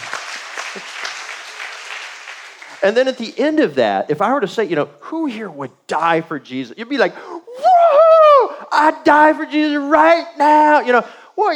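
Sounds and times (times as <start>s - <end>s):
church congregation applauding baptisms: 0.0s - 3.3s
speech: 0.7s - 1.0s, 2.8s - 7.3s, 8.7s - 11.5s.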